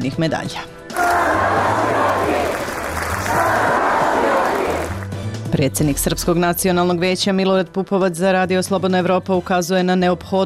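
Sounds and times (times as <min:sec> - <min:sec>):
speech: 0:00.0 - 0:01.7, 0:05.6 - 0:10.4
large crowd cheering welcoming returning team: 0:00.9 - 0:05.1.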